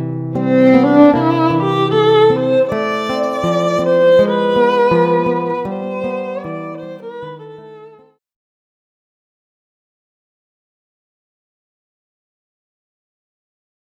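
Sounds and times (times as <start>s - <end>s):
guitar: 0.0s - 8.1s
violin: 0.0s - 8.2s.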